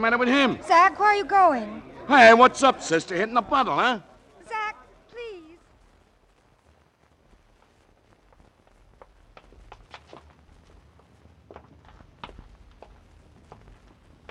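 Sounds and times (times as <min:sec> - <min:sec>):
speech: 0:00.0 - 0:04.1
footsteps of people walking at night on Christmas Eve: 0:07.1 - 0:14.2.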